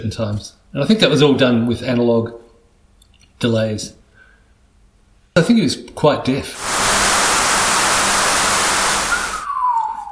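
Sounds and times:
speech: 0.0 - 2.4, 3.4 - 4.0, 5.4 - 6.7
radio atmospherics descending whistle tone: 6.6 - 10.0.

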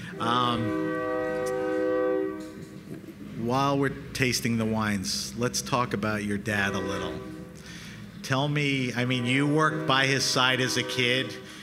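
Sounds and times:
train horn: 0.0 - 2.8, 6.5 - 7.6, 8.9 - 11.6
speech: 0.2 - 1.2, 3.4 - 7.3, 8.3 - 11.6.

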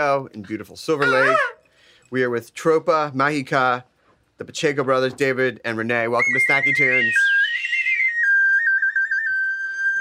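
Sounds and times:
speech: 0.0 - 7.3
person whistling: 6.2 - 9.9.

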